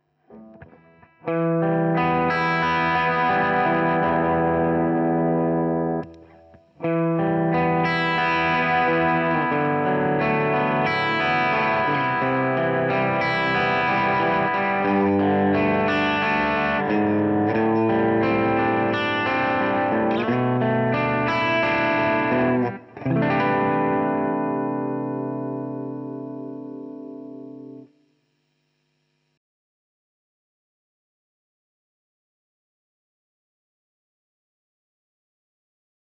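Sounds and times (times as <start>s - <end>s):
JHS Prestige boost into Princeton amp breakup: 0.3s - 27.9s.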